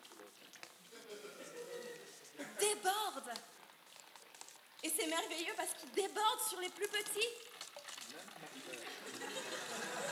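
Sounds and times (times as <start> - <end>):
laughter: 0.9 - 2.2, 8.5 - 10.1
speech: 2.6 - 3.6, 4.8 - 7.5, 8.1 - 9.6
water spilling and splashing onto a floor: 3.2 - 9.3.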